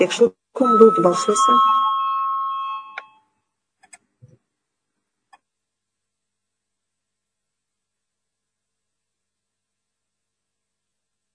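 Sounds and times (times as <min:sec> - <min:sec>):
speech: 0:00.0 - 0:01.8
electric parliament voting bell ringing: 0:00.6 - 0:03.2.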